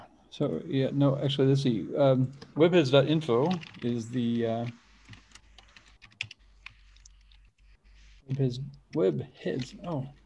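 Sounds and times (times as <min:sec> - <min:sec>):
speech: 0:00.3 - 0:04.8, 0:08.3 - 0:10.2
keyboard typing: 0:03.4 - 0:10.2.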